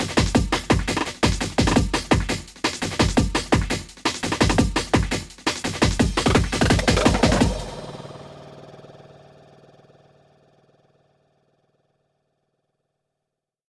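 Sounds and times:
Roland TR 8S drum machine pattern: 0.0 - 8.3.

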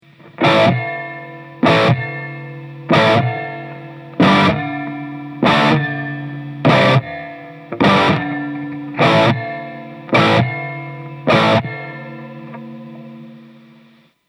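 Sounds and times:
spring ringing: 0.4 - 14.0.

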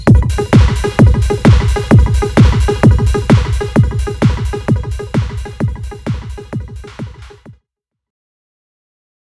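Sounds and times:
resonant chords from an effects unit: 0.1 - 7.4.

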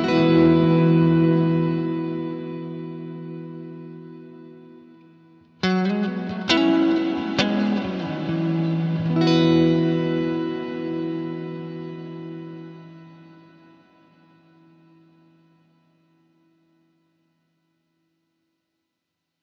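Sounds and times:
guitar riff through VALETON Dapper Indie hall reverb: 0.0 - 16.8.

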